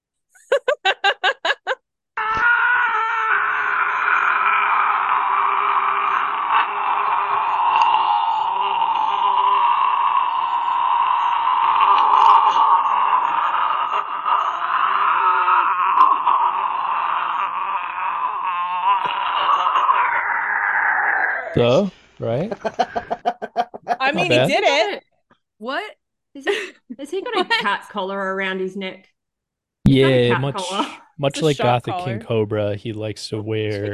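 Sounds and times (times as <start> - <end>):
laughter: 0.4 - 1.8, 21.6 - 25.0, 26.5 - 27.9, 29.9 - 33.9
long human scream: 2.2 - 21.6
speech: 24.2 - 25.0, 27.6 - 29.1, 29.9 - 33.9.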